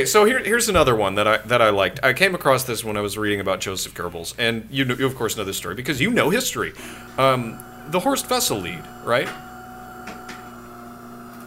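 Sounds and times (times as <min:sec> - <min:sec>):
speech: 0:00.0 - 0:09.5
espresso machine shutting off: 0:05.2 - 0:11.4.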